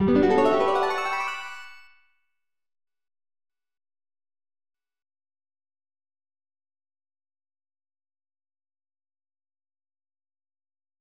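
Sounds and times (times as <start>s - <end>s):
magical jingle: 0.0s - 2.0s.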